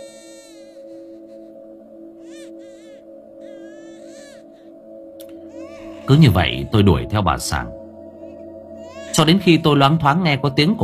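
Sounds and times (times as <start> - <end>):
children crying faintly all around: 0.0 - 1.4, 2.2 - 4.6, 5.4 - 7.6, 8.3 - 9.7
speech: 6.1 - 7.8, 9.2 - 10.8.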